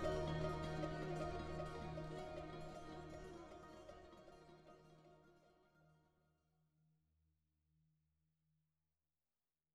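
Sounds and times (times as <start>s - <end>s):
dramatic strings with Middle Eastern flair: 0.0s - 5.0s.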